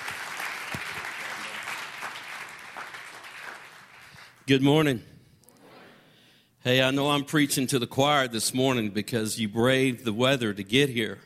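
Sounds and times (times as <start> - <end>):
audience clapping: 0.0 - 4.5
speech: 4.5 - 5.1, 6.6 - 11.2.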